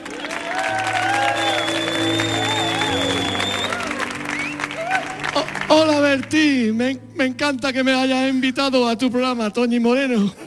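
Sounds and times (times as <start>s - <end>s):
crowd clapping: 0.0s - 6.4s
bright upbeat music: 0.0s - 9.4s
speech: 5.8s - 10.4s.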